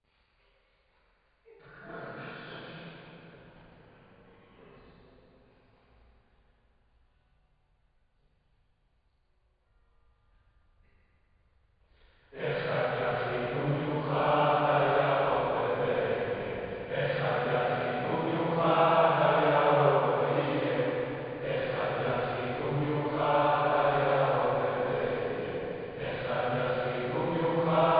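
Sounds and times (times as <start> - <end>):
choir singing: 12.4 - 27.9.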